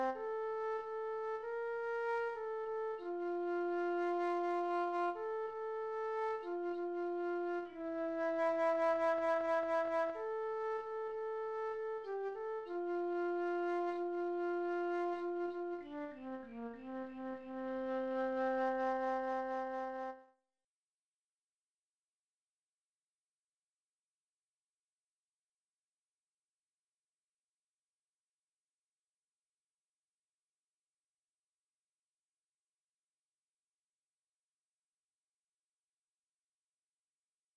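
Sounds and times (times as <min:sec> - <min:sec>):
flute: 0:00.0 - 0:20.3.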